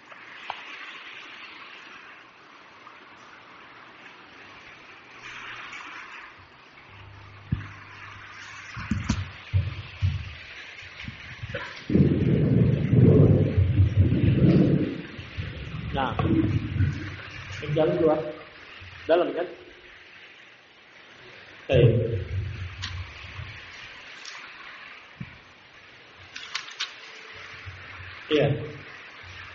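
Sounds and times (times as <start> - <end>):
rain: 0.0 - 29.5
thunder: 8.7 - 17.8
speech: 16.0 - 17.0, 17.8 - 18.3.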